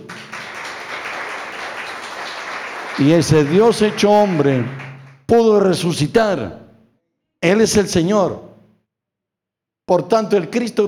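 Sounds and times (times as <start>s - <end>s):
audience applause: 0.0s - 5.2s
speech: 3.0s - 6.6s, 7.4s - 8.5s, 9.9s - 10.8s.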